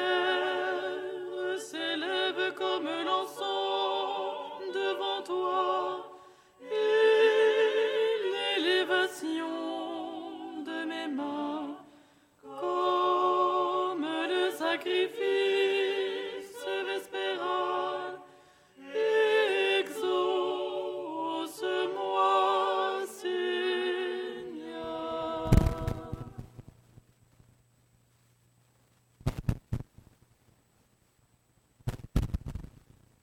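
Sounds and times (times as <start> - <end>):
alto voice chanting a vespers sticheron in tone seven: 0.0 - 26.5.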